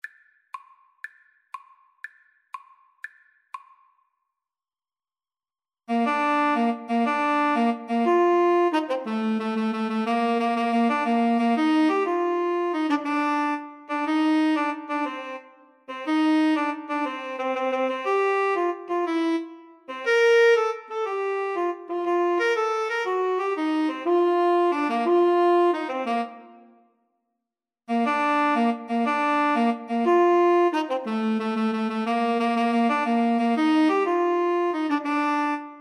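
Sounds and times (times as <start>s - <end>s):
tenor saxophone duet: 5.9s - 26.8s, 27.9s - 35.7s.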